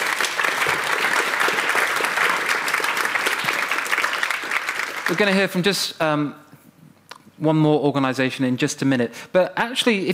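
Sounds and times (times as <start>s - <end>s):
audience round of applause: 0.0s - 5.6s
speech: 5.1s - 6.4s, 7.4s - 10.1s.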